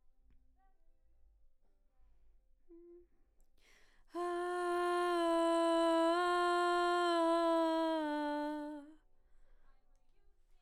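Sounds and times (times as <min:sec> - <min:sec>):
background vocals: 0:04.2 - 0:08.9.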